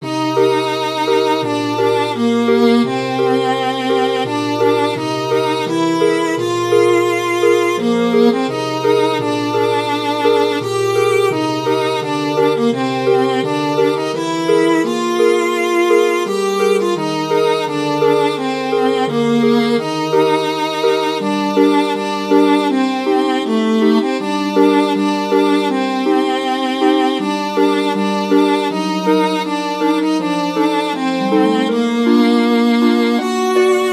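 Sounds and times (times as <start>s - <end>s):
harp: 0.0s - 33.9s
viola: 0.0s - 33.9s.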